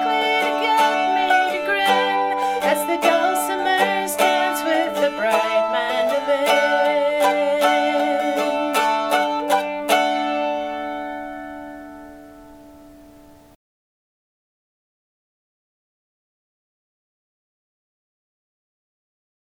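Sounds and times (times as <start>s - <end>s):
dulcimer dance tune: 0.0s - 13.6s.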